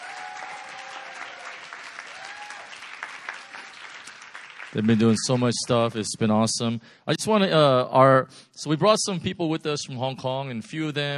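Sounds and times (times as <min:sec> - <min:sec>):
audience applause: 0:00.0 - 0:06.0
speech: 0:04.7 - 0:11.1.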